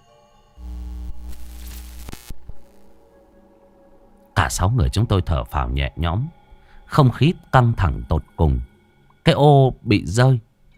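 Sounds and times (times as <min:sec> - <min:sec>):
failing fluorescent tube light buzzing and flickering: 0:00.6 - 0:03.0
speech: 0:04.5 - 0:10.7.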